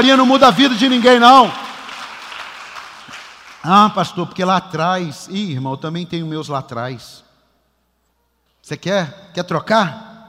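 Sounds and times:
speech: 0:00.0 - 0:01.6, 0:03.6 - 0:07.2, 0:08.6 - 0:10.1
audience applauding: 0:00.0 - 0:03.8.

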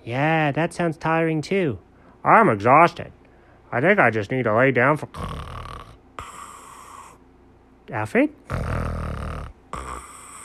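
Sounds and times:
speech: 0:00.0 - 0:05.5, 0:07.9 - 0:08.8
person snoring after falling asleep: 0:05.1 - 0:07.2, 0:08.5 - 0:10.4.

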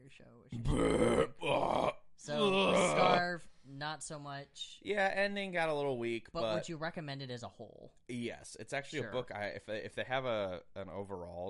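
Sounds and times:
speech: 0:00.1 - 0:02.3, 0:04.0 - 0:11.4
loud low raspy belch: 0:00.6 - 0:03.2.

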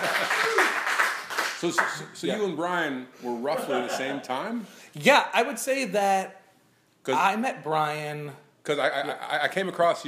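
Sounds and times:
laughter: 0:00.0 - 0:00.8, 0:03.4 - 0:04.5
crowd applause: 0:00.0 - 0:02.0
speech: 0:01.6 - 0:06.4, 0:07.0 - 0:10.0.

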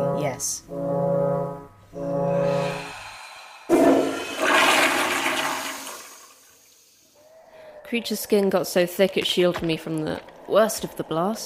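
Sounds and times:
low droning hornlike tones: 0:00.0 - 0:04.0
speech: 0:00.2 - 0:01.0, 0:07.9 - 0:11.4
toilet flushing: 0:02.6 - 0:07.1.

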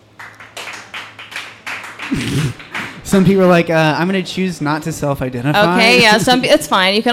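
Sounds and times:
small group clapping: 0:00.0 - 0:03.6
speech: 0:02.1 - 0:07.1.

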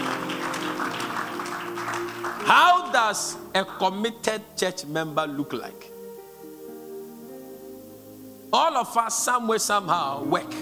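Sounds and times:
audience clapping hands: 0:00.0 - 0:03.9
speech: 0:02.5 - 0:05.9, 0:08.5 - 0:10.6.

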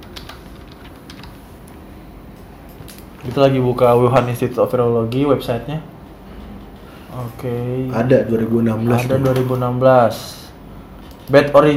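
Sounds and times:
computer keyboard typing a search keyword: 0:00.0 - 0:01.8
speech: 0:03.2 - 0:05.9, 0:07.2 - 0:10.4, 0:11.3 - 0:11.7.

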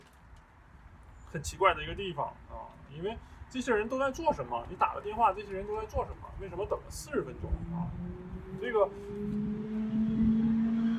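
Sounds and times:
speech: 0:01.3 - 0:09.5
motorcycle passing: 0:07.0 - 0:10.9.

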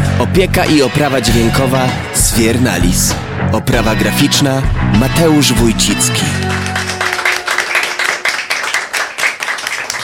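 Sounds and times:
speech: 0:00.2 - 0:06.9
audience applause: 0:06.2 - 0:10.0.

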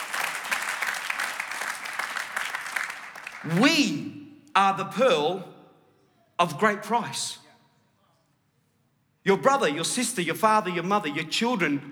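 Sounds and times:
audience applause: 0:00.0 - 0:03.8
speech: 0:03.4 - 0:05.5, 0:06.4 - 0:07.4, 0:09.2 - 0:11.9.

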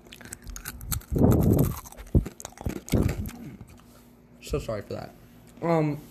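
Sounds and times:
chewing crunchy pretzels: 0:00.0 - 0:04.0
speech: 0:04.5 - 0:06.0.

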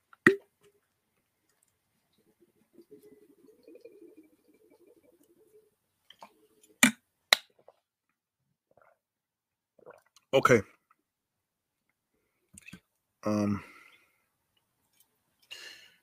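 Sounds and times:
person drinking a sip of water: 0:08.7 - 0:09.0, 0:09.8 - 0:10.3
speech: 0:10.3 - 0:10.7, 0:13.2 - 0:13.7.

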